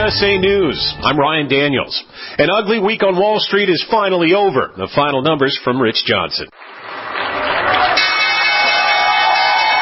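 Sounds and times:
speech: 0.1 - 6.7
crowd cheering and shouting at stock exchange closing: 6.9 - 9.7.

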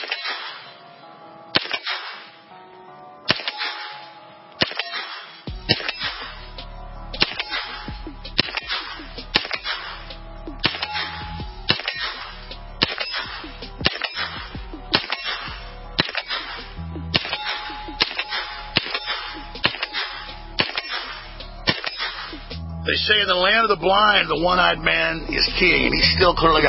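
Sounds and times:
Turkish-made MP5 clone firing single shots: 0.0 - 0.9, 1.5 - 2.5, 3.3 - 6.5, 7.2 - 22.5
speech: 23.1 - 26.6.

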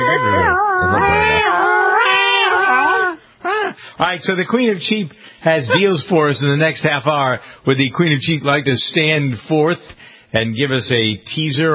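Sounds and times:
voice imitating a New York siren: 0.0 - 3.8
speech: 4.0 - 11.7.

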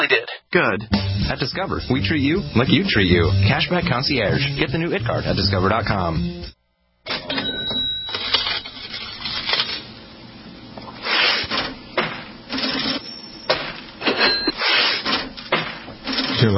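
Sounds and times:
speech: 0.1 - 6.5
metallic bell rings of an old mechanical cash register: 7.1 - 9.5, 12.6 - 14.6
old mechanical cash register clattering: 7.1 - 9.9, 12.5 - 16.5.

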